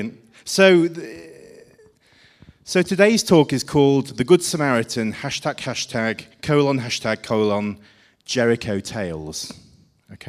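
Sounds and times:
speech: 0.0s - 1.3s, 2.6s - 10.2s
recorded gasps from a 1986 Guardian advert: 1.8s - 2.7s, 7.8s - 8.3s.

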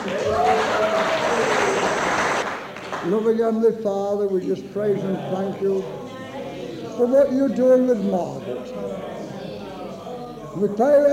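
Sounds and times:
audience applause: 0.0s - 3.2s
speech: 3.1s - 6.0s, 7.0s - 9.2s, 10.6s - 11.1s.

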